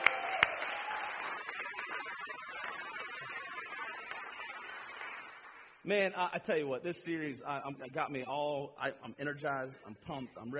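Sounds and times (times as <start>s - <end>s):
church congregation applauding to welcome people in: 0.0s - 5.8s
speech: 5.8s - 10.5s.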